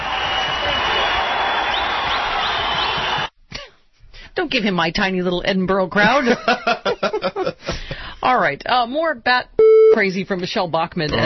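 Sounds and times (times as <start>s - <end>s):
rock star applause effect: 0.0s - 3.3s
speech: 4.5s - 7.3s, 8.3s - 11.2s
laughter: 6.0s - 8.0s.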